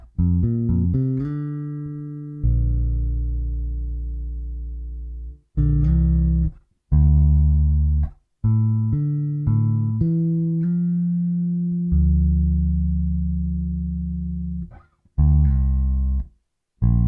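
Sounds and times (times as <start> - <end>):
D minor to Bb major bassline: 0.0 - 17.0.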